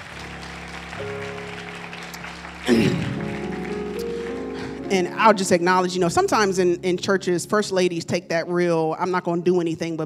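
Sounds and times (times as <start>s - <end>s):
audience applause: 0.0s - 5.6s
speech: 1.0s - 1.4s, 4.9s - 10.0s.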